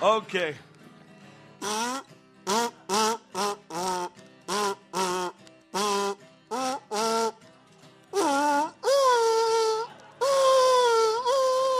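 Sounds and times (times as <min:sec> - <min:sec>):
kazoo imitating dog yips and howl: 0:01.6 - 0:07.4, 0:08.1 - 0:11.7.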